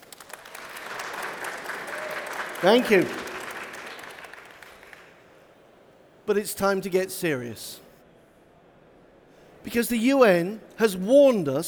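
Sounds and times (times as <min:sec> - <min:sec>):
live audience clapping: 0:00.0 - 0:05.3
speech: 0:02.6 - 0:03.2, 0:06.3 - 0:07.8, 0:09.7 - 0:11.6.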